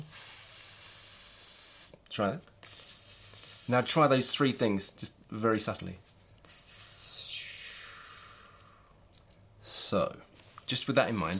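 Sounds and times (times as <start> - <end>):
person hissing with the mouth: 0.0 - 2.0, 2.6 - 4.2, 6.5 - 8.9
speech: 2.2 - 2.5, 3.7 - 6.6, 9.9 - 11.3.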